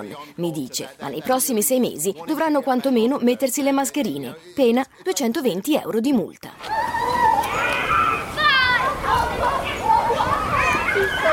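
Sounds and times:
speech: 0.0s - 6.9s
children chattering and shouting in a busy primary schoolyard: 6.6s - 11.3s.

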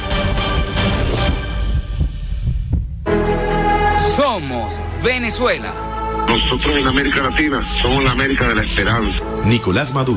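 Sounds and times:
low throbbing heartbeat sound effect: 0.0s - 3.2s
speech: 4.3s - 10.1s.

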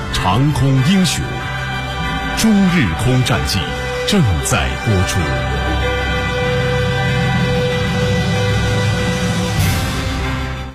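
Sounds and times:
speech: 0.2s - 1.4s, 2.4s - 5.7s
air raid alarm siren: 1.4s - 10.6s.

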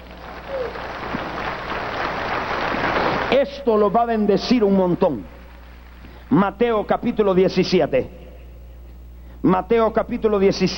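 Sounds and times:
audience applause: 0.0s - 3.4s
speech: 3.3s - 5.4s, 6.3s - 8.2s, 9.4s - 10.7s.

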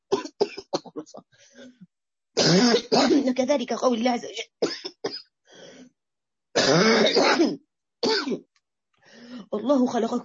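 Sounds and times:
harsh cough during a spoken religious lesson: 0.1s - 1.1s, 2.4s - 3.3s, 4.6s - 5.3s, 6.6s - 8.4s
speech: 2.5s - 4.6s, 9.7s - 10.2s.

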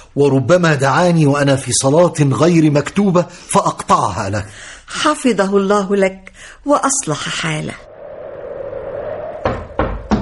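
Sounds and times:
speech: 0.2s - 7.9s
steady low hum: 7.7s - 9.8s
knocking on a door: 9.4s - 10.2s.

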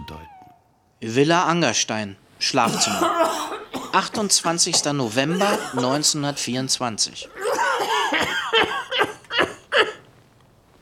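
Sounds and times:
speech: 1.0s - 8.4s
man coughing in a rough hacking fit in a bedroom: 2.6s - 6.2s, 7.2s - 10.0s.

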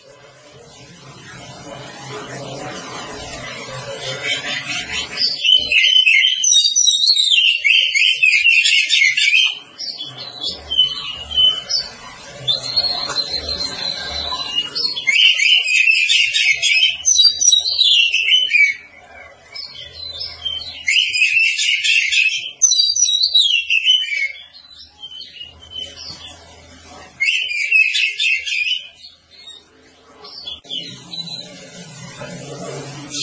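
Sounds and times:
oriental magpie-robin singing: 4.0s - 26.4s, 27.2s - 31.5s.

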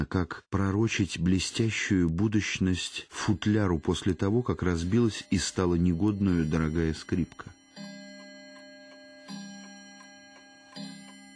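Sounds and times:
speech: 0.0s - 7.6s
clock ticking: 1.3s - 11.3s
clock striking: 3.4s - 11.3s.

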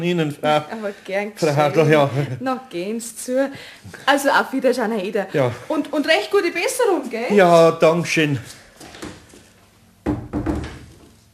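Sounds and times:
speech: 0.0s - 8.6s
door slab hitting the frame and latch catching: 10.0s - 11.2s.

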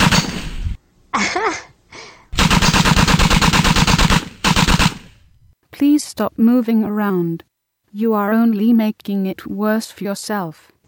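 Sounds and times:
machine gun fire: 0.0s - 0.7s, 2.4s - 5.3s
speech: 5.8s - 10.8s.

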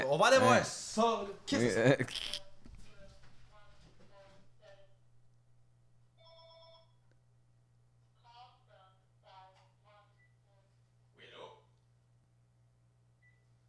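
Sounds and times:
speech: 0.1s - 2.4s
telephone ringing: 6.2s - 7.0s.

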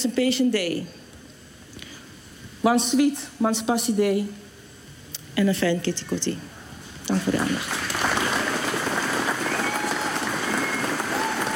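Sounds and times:
speech: 0.0s - 1.0s, 2.6s - 4.4s, 5.4s - 6.5s, 7.1s - 8.1s
audience applause: 7.1s - 11.5s.

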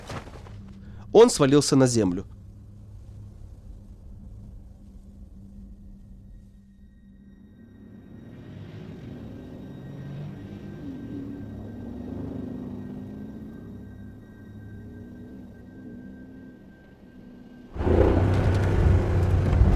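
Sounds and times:
speech: 1.2s - 2.4s
jeep engine droning rumble: 17.8s - 19.7s.

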